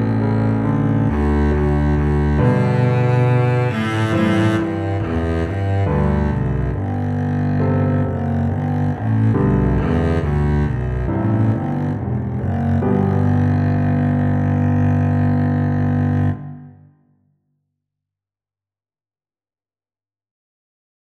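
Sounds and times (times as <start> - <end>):
double bass melody: 0.0 - 16.8.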